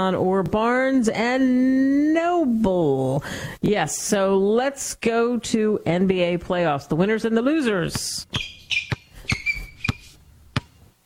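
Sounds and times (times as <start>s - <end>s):
speech: 0.0s - 8.8s
high squeaky tones: 8.3s - 10.2s
basketball bouncing: 8.3s - 10.8s.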